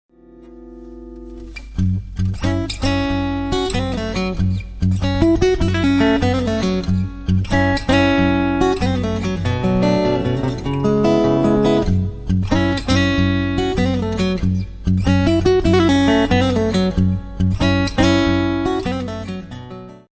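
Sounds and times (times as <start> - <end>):
blues music: 0.2 - 20.0.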